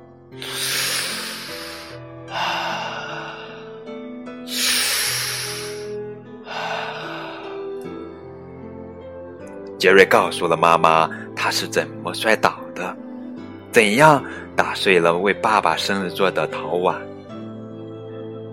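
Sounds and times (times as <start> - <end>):
speech: 0.3 - 0.6, 9.8 - 12.9, 13.8 - 17.1
deep breaths: 0.4 - 7.8.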